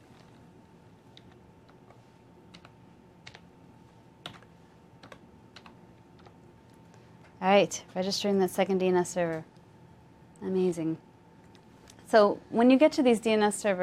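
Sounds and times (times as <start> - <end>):
faint steady hum: 0.0 - 13.8
typing on a computer keyboard: 2.5 - 3.4, 4.2 - 6.4
speech: 7.4 - 9.5, 10.4 - 11.1, 12.1 - 13.8.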